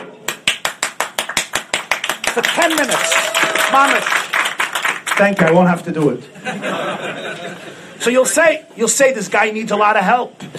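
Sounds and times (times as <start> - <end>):
one person clapping hands: 0.2 - 5.6
speech: 2.4 - 4.2, 5.2 - 10.5
laughter: 6.3 - 7.9.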